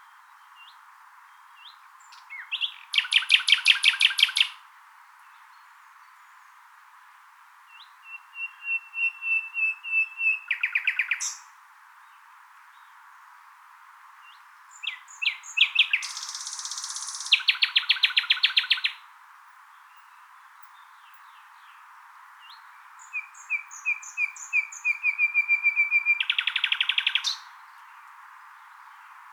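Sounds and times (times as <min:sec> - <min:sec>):
common nightingale singing: 0:00.0 - 0:04.6, 0:07.7 - 0:11.5, 0:14.2 - 0:19.1, 0:19.8 - 0:29.3.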